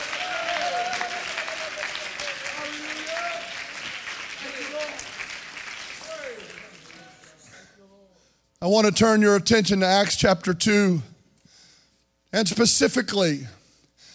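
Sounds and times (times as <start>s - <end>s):
audience clapping hands: 0.0s - 7.6s
speech: 8.6s - 11.1s, 12.4s - 13.6s.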